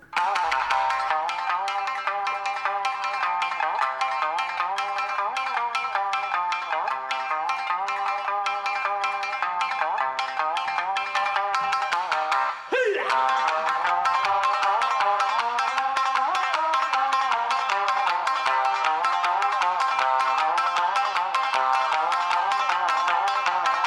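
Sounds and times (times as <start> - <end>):
shamisen music: 0.0 - 23.8.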